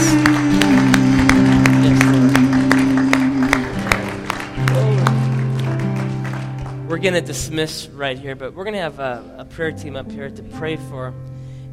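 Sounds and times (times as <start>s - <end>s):
audience applauding: 0.0s - 7.2s
speech: 7.0s - 11.3s.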